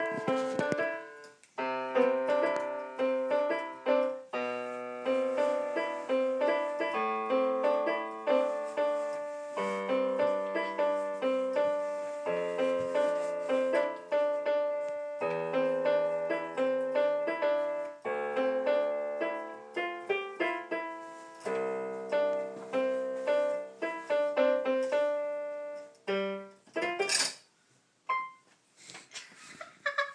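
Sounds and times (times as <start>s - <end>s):
seven-year-old child playing a piano piece: 0.0s - 27.4s, 28.0s - 28.5s.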